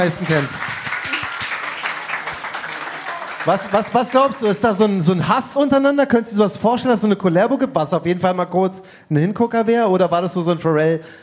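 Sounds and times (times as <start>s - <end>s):
speech: 0.0s - 0.8s, 3.4s - 11.2s
crowd applause: 0.0s - 4.9s.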